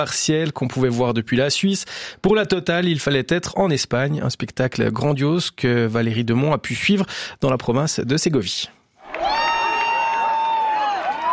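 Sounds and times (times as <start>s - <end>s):
speech: 0.0s - 8.8s
crowd cheering at a total solar eclipse on a farm field in Segovia province, Spain: 9.0s - 11.3s
high whoop at a total solar eclipse: 9.0s - 11.3s.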